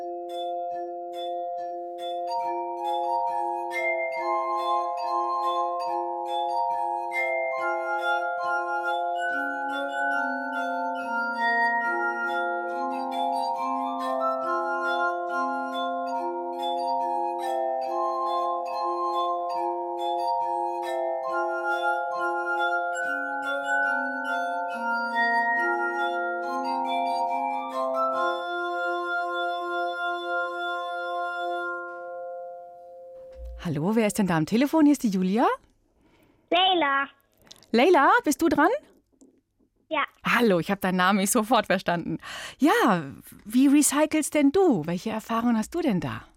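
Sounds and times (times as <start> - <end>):
glass music played by musicians: 0.0 - 35.4
speech: 33.9 - 35.6, 37.7 - 38.8, 40.4 - 46.3.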